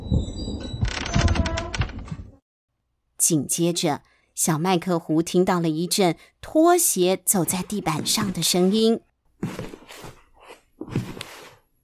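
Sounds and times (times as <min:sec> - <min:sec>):
door opening: 0:00.0 - 0:02.4
speech: 0:03.2 - 0:09.6.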